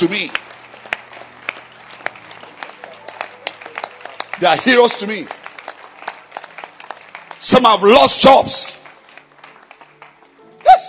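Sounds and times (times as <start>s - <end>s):
speech: 0.0s - 0.4s, 4.4s - 5.4s, 7.4s - 8.8s
audience clapping hands: 0.0s - 10.8s.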